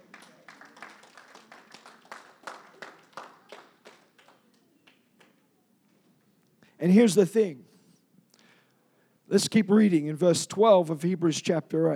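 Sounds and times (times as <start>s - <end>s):
people clapping: 0.0s - 6.0s
speech: 6.8s - 7.7s, 9.3s - 11.9s.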